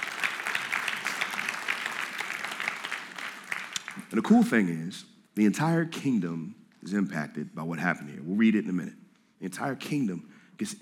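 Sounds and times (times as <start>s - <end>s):
audience applause: 0.0s - 4.3s
speech: 4.1s - 10.8s.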